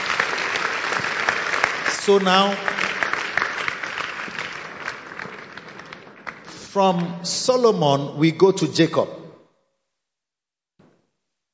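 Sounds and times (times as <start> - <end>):
audience clapping: 0.0 - 8.0
speech: 2.1 - 2.7, 6.8 - 9.2.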